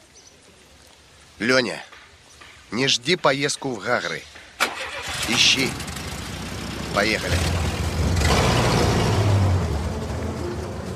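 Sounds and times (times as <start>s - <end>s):
speech: 1.4s - 1.9s, 2.7s - 4.3s, 5.0s - 5.9s, 6.9s - 7.7s
car driving away: 4.6s - 10.9s.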